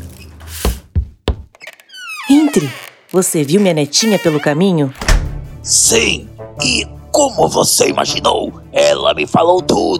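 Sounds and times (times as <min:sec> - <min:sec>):
speech: 0:02.6 - 0:05.0, 0:05.6 - 0:09.9
knocks on a door: 0:05.0 - 0:05.7.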